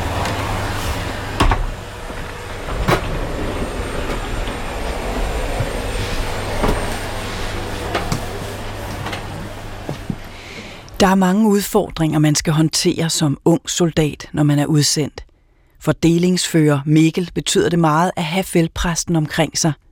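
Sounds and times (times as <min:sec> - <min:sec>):
low hum: 0:00.0 - 0:11.0
steady droning whir like a vacuum cleaner: 0:00.0 - 0:11.0
speech: 0:11.0 - 0:19.8.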